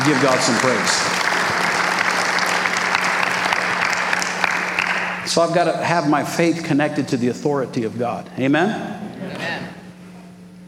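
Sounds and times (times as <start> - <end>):
audience clapping hands: 0.0 - 5.3
speech: 0.1 - 1.4, 5.3 - 9.7.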